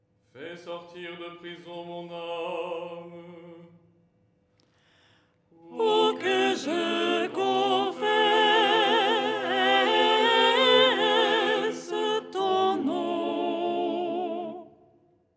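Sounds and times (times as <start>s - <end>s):
soprano singing: 5.6s - 14.9s.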